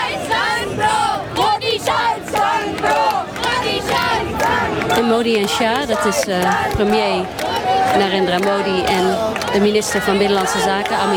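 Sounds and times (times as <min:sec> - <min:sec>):
young crowd chanting a politician's name: 0:00.0 - 0:11.1
speech: 0:05.0 - 0:11.1.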